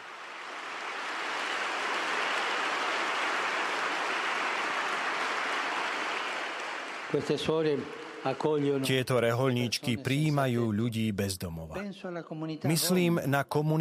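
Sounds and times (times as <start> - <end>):
audience applause: 0.0 - 9.8
speech: 7.1 - 13.8.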